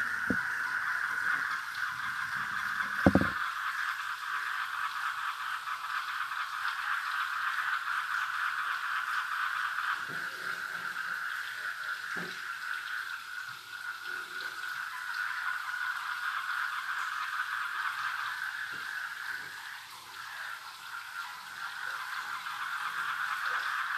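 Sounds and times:
river frogs rattling chorus at night: 0.0s - 23.9s
trickling water: 0.0s - 23.9s
sharp knock: 3.0s - 3.4s.

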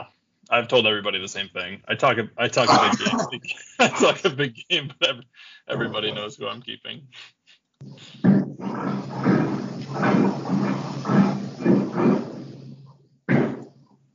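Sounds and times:
speech: 0.0s - 9.3s
laughter: 1.9s - 8.2s
person's stomach growling: 2.6s - 4.5s, 5.4s - 6.6s, 7.8s - 13.8s.

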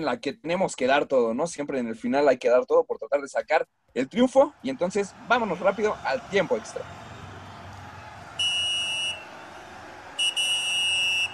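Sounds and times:
speech: 0.0s - 7.0s
laughter: 4.3s - 11.3s
referee's whistle blasts: 8.4s - 9.4s, 10.1s - 11.3s.

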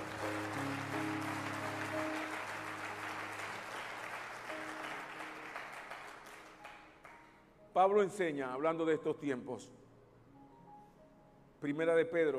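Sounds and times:
audience applause: 0.0s - 7.2s
speech: 7.8s - 9.8s, 11.6s - 12.3s.

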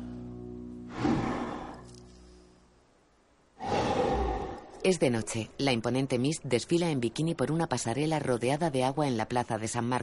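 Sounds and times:
breathing through a portable oxygen device: 0.9s - 2.0s, 3.6s - 4.8s
speech: 4.8s - 10.0s.

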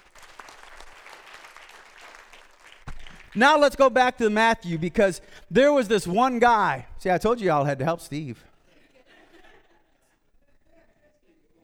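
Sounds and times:
audience hand clapping: 0.0s - 3.7s
speech: 3.3s - 8.5s.

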